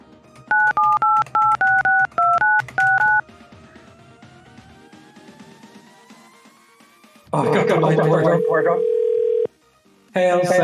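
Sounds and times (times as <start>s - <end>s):
telephone number dialed with touch-tone beeps: 0.5s - 3.2s, 7.4s - 9.5s
speech: 7.4s - 8.9s, 10.1s - 10.6s.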